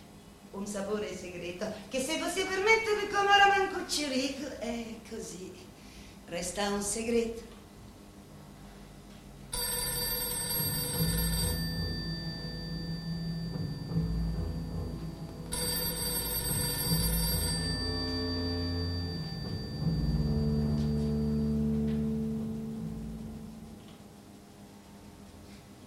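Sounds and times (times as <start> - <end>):
speech: 0.6 - 5.7, 6.3 - 7.5
telephone bell ringing: 9.5 - 21.8
low tonal hum: 11.5 - 24.2.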